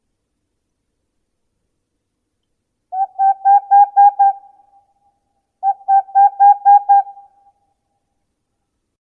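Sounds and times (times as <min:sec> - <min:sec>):
Aegolius funereus: 0:02.9 - 0:04.8, 0:05.6 - 0:07.5.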